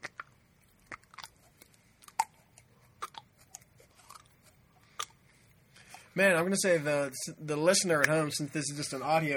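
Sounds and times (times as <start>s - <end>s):
putty squelching as it is worked: 0.0s - 6.2s
speech: 6.2s - 9.3s.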